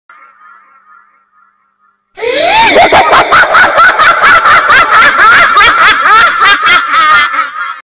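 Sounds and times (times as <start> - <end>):
creepy laughter: 2.2 - 7.8.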